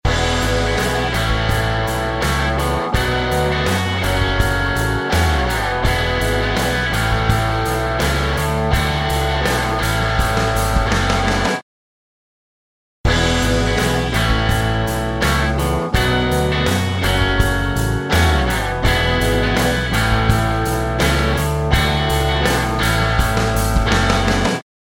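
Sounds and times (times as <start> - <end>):
guitar: 0.1 - 11.6, 13.1 - 24.6.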